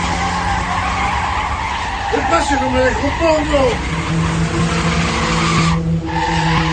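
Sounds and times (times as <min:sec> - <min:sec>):
car speeding away: 0:00.0 - 0:06.7
tires skidding: 0:00.0 - 0:06.7
speech: 0:02.2 - 0:04.9.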